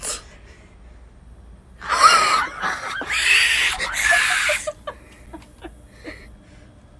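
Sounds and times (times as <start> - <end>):
person screaming: 1.8 - 4.7
laughter: 1.8 - 6.2.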